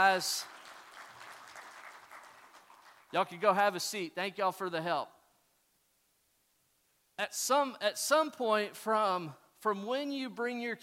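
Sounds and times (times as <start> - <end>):
speech: 0.0 - 0.6, 3.1 - 5.2, 7.2 - 10.8
audience applause: 0.0 - 3.2.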